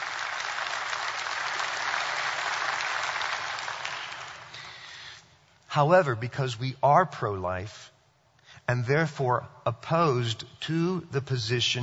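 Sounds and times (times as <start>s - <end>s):
crowd applauding: 0.0s - 4.9s
speech: 5.8s - 8.0s, 8.7s - 11.8s.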